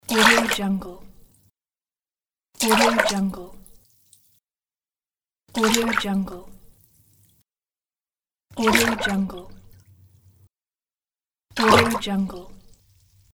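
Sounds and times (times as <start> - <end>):
water splash: 0.1 - 0.7, 2.6 - 3.8, 5.6 - 6.2, 8.6 - 10.0, 11.6 - 13.2.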